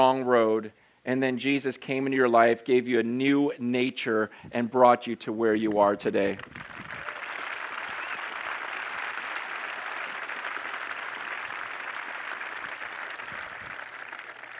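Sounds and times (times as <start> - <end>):
speech: 0.0 - 6.7
crowd clapping: 6.3 - 14.5.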